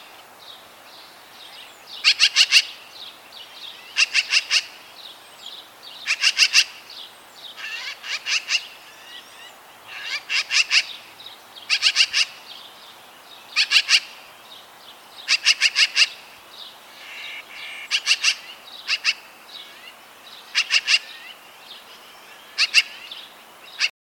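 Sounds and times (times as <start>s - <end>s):
magpie calling: 2.0s - 2.8s, 4.0s - 4.8s, 6.0s - 6.8s, 7.6s - 11.0s, 11.7s - 12.4s, 13.6s - 14.2s, 15.3s - 16.3s, 16.9s - 21.4s, 22.3s - 23.1s.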